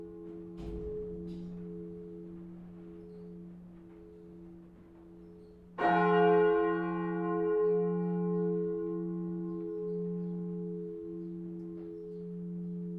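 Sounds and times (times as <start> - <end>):
church bells ringing in Northeim: 0.0 - 12.9.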